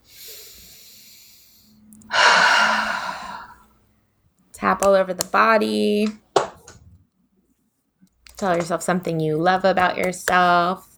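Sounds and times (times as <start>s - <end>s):
deep breath during a guided self-acceptance tapping session: 0.0s - 3.6s
speech: 4.7s - 6.2s, 8.4s - 10.9s.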